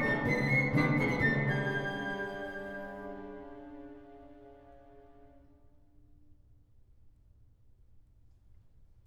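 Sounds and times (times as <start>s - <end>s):
orchestral dance etude: 0.0s - 5.3s.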